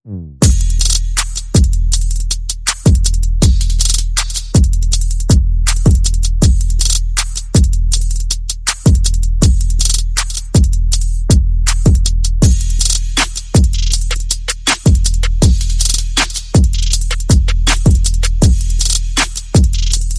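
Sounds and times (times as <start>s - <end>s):
bass: 0.0s - 20.1s
percussion: 0.4s - 20.1s.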